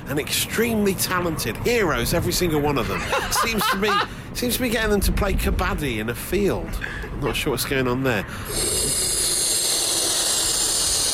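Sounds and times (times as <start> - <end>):
speech: 0.1 - 9.2
laughter: 2.8 - 4.1
balloon being inflated: 8.5 - 11.1.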